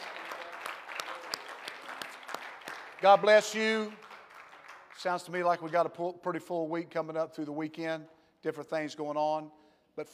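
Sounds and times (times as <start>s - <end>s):
audience clapping hands in praise: 0.0s - 6.0s
speech: 3.0s - 4.0s, 5.0s - 10.1s.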